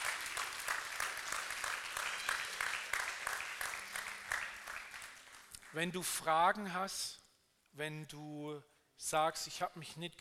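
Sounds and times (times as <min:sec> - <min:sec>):
audience applause: 0:00.0 - 0:05.6
speech: 0:05.7 - 0:10.1.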